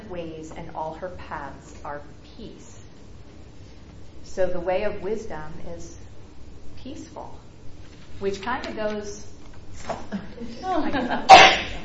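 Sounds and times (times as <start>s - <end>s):
speech: 0.1s - 3.0s, 4.2s - 6.1s, 6.8s - 7.4s, 8.2s - 11.8s
laughter: 10.1s - 11.8s
sneeze: 11.3s - 11.8s.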